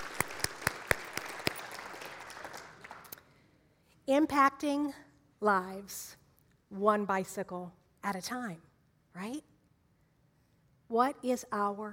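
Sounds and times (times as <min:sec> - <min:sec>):
audience hand clapping: 0:00.0 - 0:03.3
speech: 0:04.1 - 0:09.5, 0:10.9 - 0:11.9.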